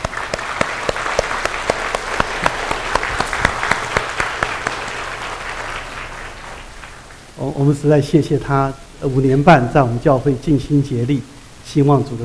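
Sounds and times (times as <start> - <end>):
audience clapping hands: 0.0 - 7.3
speech: 7.6 - 12.2.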